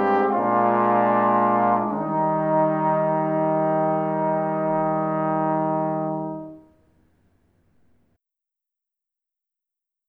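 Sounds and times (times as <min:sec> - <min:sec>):
quartet playing: 0:00.0 - 0:06.7.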